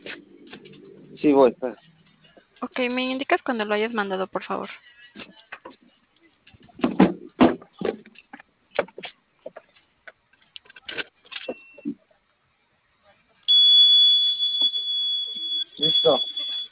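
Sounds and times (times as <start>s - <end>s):
speech: 1.2s - 1.9s, 2.6s - 5.0s
panic button alarm tone over a phone call: 13.5s - 16.7s.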